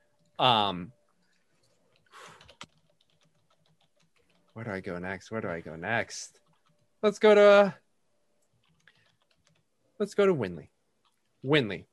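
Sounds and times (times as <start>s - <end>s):
speech: 0.4s - 1.0s, 4.6s - 6.4s, 7.0s - 7.8s, 10.0s - 10.7s, 11.4s - 11.9s
typing on a keyboard: 1.6s - 5.0s, 6.1s - 7.0s, 8.4s - 9.7s.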